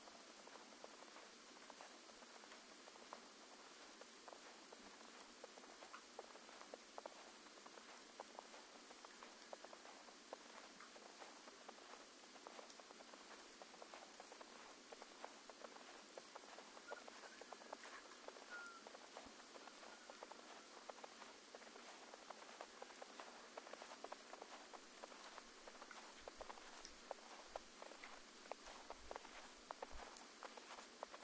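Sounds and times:
morning snow falling at a mountain hut: 0.0 - 31.2
faint chirp: 13.9 - 30.8.

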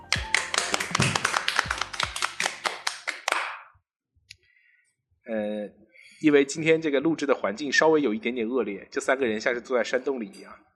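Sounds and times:
audience clapping: 0.0 - 3.7
speech: 6.2 - 10.7.

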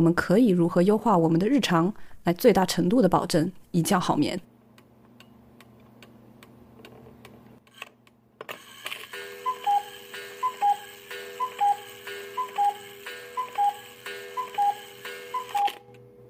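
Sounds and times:
speech: 0.0 - 4.5
gentle alarm clock: 9.1 - 15.9.

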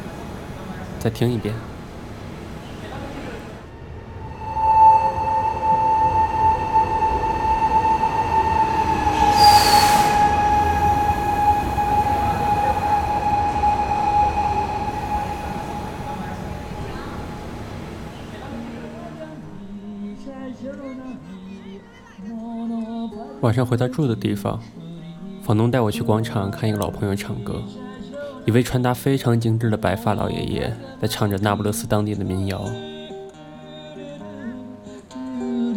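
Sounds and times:
train pulling into a station: 0.0 - 19.2
speech: 1.0 - 1.7, 23.5 - 24.8, 25.5 - 27.8, 28.4 - 32.9
hissing burst: 8.4 - 18.4.

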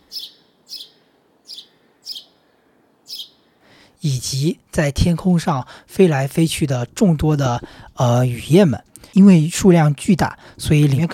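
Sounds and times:
house sparrow chirping: 0.0 - 3.5
hiss: 0.0 - 11.1
speech: 4.0 - 11.1.

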